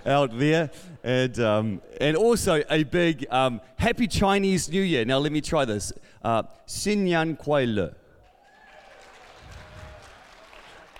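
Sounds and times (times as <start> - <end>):
speech: 0.0 - 8.0
audience applause: 8.4 - 10.9.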